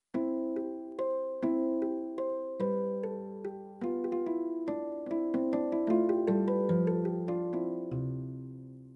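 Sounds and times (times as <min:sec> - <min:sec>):
harp tune: 0:00.1 - 0:08.8.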